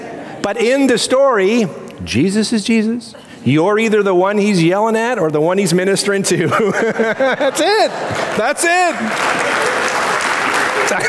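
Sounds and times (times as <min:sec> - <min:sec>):
speech: 0:00.5 - 0:09.8
laughter: 0:06.3 - 0:11.0
audience clapping: 0:07.9 - 0:11.0.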